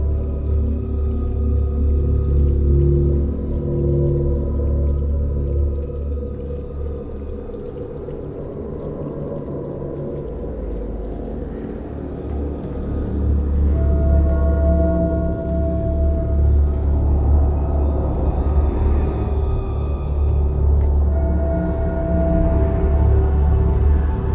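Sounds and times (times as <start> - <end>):
water loop: 0.0 - 24.3.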